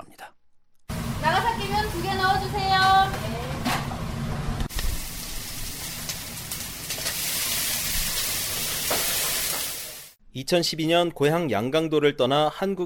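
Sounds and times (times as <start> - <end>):
food sizzling and frying in a Japanese ramen shop kitchen: 0.9 - 10.2
speech: 10.4 - 12.8.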